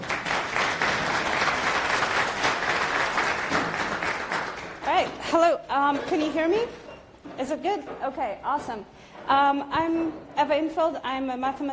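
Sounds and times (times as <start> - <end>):
audience applause: 0.0 - 4.8
speech: 5.0 - 11.7.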